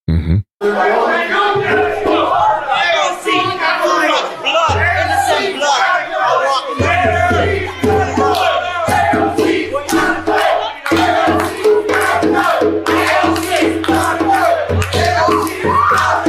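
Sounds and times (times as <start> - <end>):
crowd yelling and chanting at a rally: 0.6 - 16.2
clapping: 9.9 - 12.2, 12.8 - 16.2
whoops: 15.5 - 16.2.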